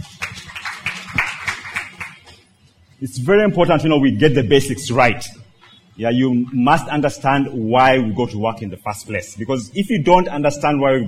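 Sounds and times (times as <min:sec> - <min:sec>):
audience clapping for a speaker: 0:00.0 - 0:02.4
speech: 0:03.0 - 0:05.4, 0:06.0 - 0:11.0.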